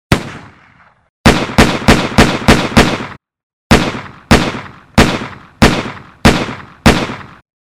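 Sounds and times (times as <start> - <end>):
gunshot: 0.1 - 7.4.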